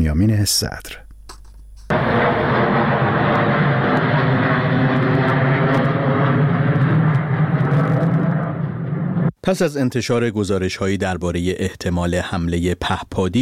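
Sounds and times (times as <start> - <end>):
speech: 0.1 - 1.0, 9.5 - 13.3
bomber aircraft engines: 1.9 - 9.3.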